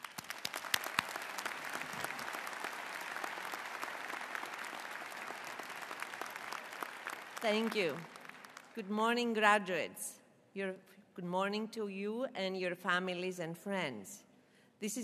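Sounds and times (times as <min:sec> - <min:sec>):
audience applause at the UC Davis 2015 Fall Commencement: 0:00.0 - 0:08.8
speech: 0:07.4 - 0:08.2, 0:08.8 - 0:15.0.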